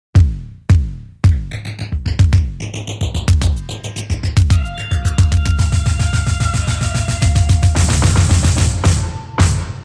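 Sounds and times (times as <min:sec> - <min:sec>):
industrial tone: 0:01.5 - 0:09.8.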